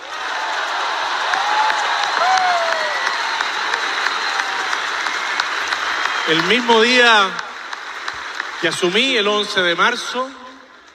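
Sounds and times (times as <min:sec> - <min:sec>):
crowd applause: 0:00.0 - 0:10.9
speech: 0:06.3 - 0:07.4, 0:08.6 - 0:10.4.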